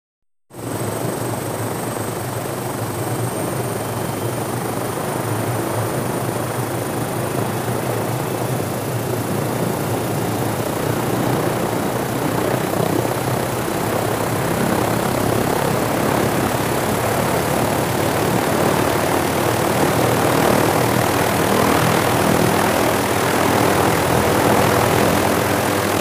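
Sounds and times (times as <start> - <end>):
helicopter flying away: 0.5 - 25.9.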